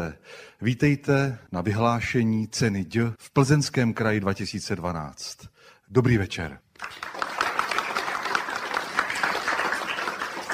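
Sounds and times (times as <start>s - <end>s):
speech: 0.0s - 7.2s
small audience applause: 6.8s - 10.5s.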